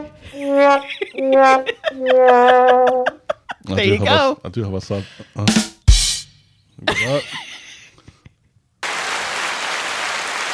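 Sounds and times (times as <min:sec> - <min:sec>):
speech: 0:00.2 - 0:05.7, 0:06.8 - 0:07.4
laughter: 0:00.3 - 0:04.2, 0:06.8 - 0:08.4
crowd applause: 0:08.8 - 0:10.5.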